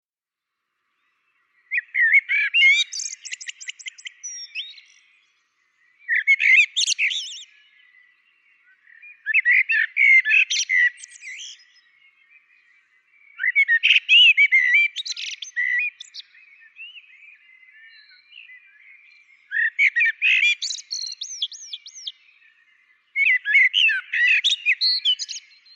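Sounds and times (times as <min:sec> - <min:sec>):
common blackbird song: 0:00.4 - 0:25.7.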